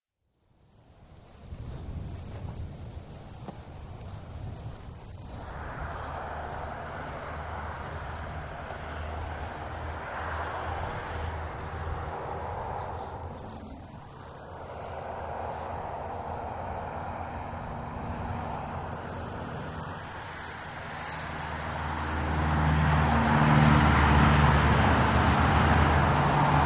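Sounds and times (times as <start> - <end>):
road traffic: 0.6 - 26.6
grasshoppers chirping: 1.7 - 26.6
crickets chirping: 5.0 - 24.7.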